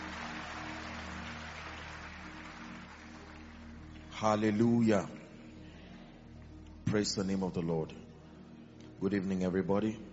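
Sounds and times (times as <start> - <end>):
audience applauding: 0.0 - 4.1
speech: 4.2 - 5.2, 6.9 - 8.0, 9.0 - 10.1.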